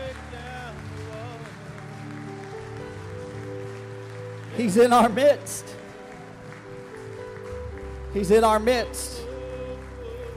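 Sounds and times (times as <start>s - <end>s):
audience clapping hands in praise: 0.0s - 10.3s
speech: 4.6s - 5.8s, 8.1s - 9.2s.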